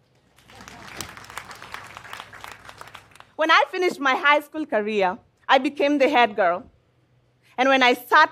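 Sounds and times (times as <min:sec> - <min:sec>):
crowd applauding: 0:00.3 - 0:03.4
speech: 0:03.4 - 0:06.7, 0:07.6 - 0:08.3.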